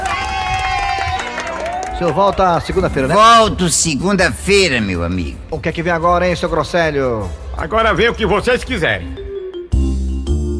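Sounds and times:
applause: 0:00.0 - 0:02.9
speech: 0:02.0 - 0:09.2.

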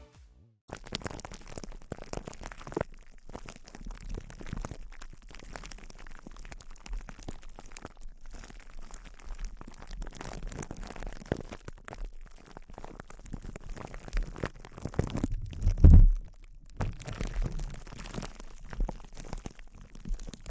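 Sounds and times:
intense close-up crinkling: 0:00.7 - 0:20.4.

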